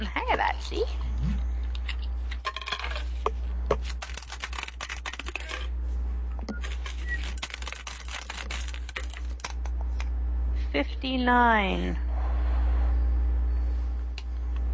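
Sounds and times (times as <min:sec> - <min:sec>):
steady low hum: 0:00.0 - 0:14.7
speech: 0:00.6 - 0:01.4, 0:10.8 - 0:12.0
percentage dice rolled for spot checks in a RuneQuest tabletop game: 0:03.8 - 0:05.7, 0:06.7 - 0:09.6.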